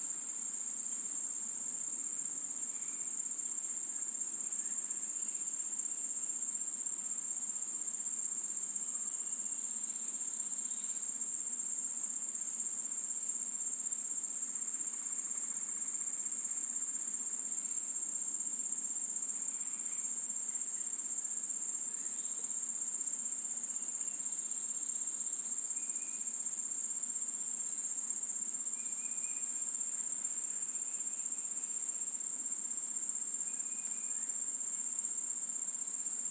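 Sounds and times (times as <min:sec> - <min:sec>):
summer sounds in a village: 0:00.0 - 0:36.2.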